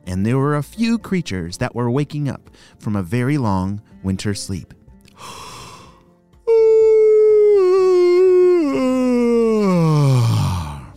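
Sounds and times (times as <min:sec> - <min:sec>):
speech: 0:00.1 - 0:05.5
yawn of a spring peeper frog: 0:06.5 - 0:10.9.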